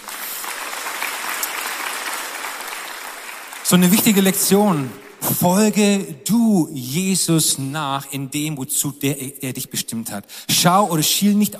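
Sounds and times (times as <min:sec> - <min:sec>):
audience applause: 0:00.0 - 0:05.4
speech: 0:03.7 - 0:11.5.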